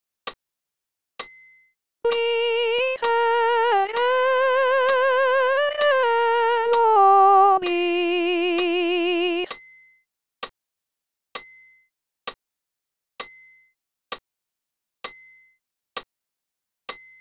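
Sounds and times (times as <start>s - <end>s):
solo soprano singing: 2.1s - 9.5s.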